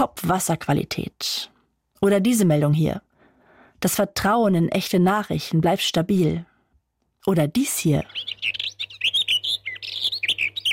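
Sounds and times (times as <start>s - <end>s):
speech: 0.0s - 3.1s, 3.8s - 6.5s, 7.2s - 8.6s
birdsong: 7.8s - 10.7s.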